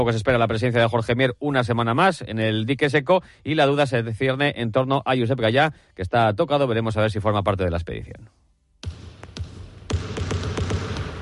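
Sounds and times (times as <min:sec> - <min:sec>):
speech: 0:00.0 - 0:08.4
basketball bounces in a radio segment jingle: 0:08.8 - 0:11.2.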